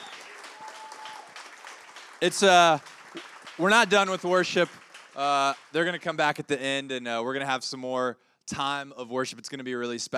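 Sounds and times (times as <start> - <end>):
audience applause for worship team: 0.0 - 6.4
speech: 2.2 - 10.1.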